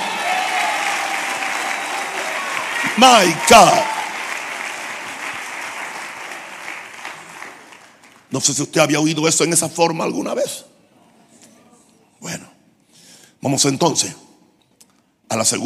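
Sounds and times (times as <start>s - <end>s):
loud audience applause: 0.0s - 8.3s
speech: 3.0s - 3.9s, 8.3s - 10.7s, 13.4s - 14.2s, 15.4s - 15.6s.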